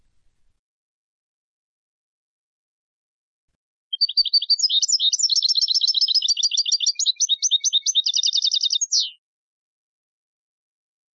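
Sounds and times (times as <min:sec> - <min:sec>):
European goldfinch Carduelis carduelis twittering trills: 0:03.9 - 0:09.2.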